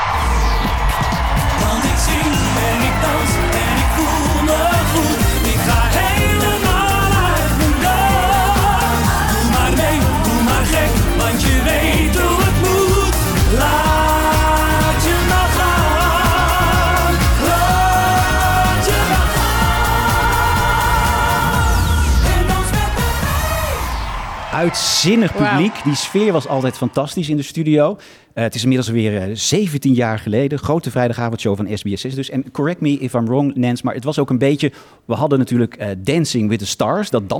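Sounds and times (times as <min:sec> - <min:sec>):
sung opening theme tune of TV show: 0:00.2 - 0:27.0
speech: 0:24.6 - 0:37.3.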